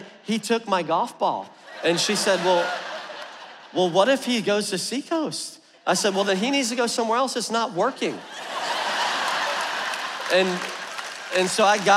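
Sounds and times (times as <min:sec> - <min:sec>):
speech: 0:00.3 - 0:02.9, 0:03.7 - 0:08.6, 0:10.3 - 0:11.9
laughter: 0:01.6 - 0:04.2, 0:08.2 - 0:11.9
audience clapping: 0:08.4 - 0:11.9.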